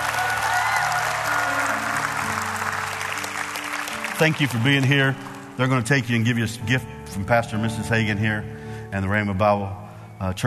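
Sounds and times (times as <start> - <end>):
audience clapping: 0.0 - 6.0
speech: 4.2 - 10.4.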